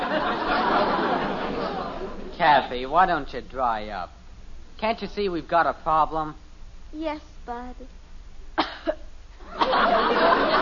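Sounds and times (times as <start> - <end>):
laughter: 0.0 - 2.6, 9.4 - 10.6
speech: 2.4 - 4.2, 4.8 - 8.0
fake coughing: 8.6 - 9.1.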